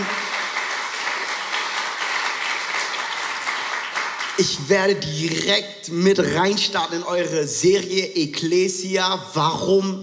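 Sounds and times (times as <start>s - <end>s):
audience applause: 0.0s - 4.4s
speech: 4.4s - 10.0s.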